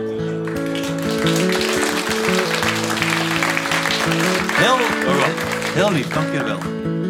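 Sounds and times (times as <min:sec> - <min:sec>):
warm audience applause: 0:00.2 - 0:06.8
speech: 0:04.7 - 0:07.0.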